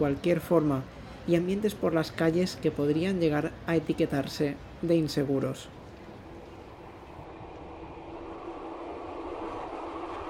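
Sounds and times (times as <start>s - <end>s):
speech: 0.0s - 5.8s
departing train of six saloon coaches rumbling on rails: 5.8s - 10.2s.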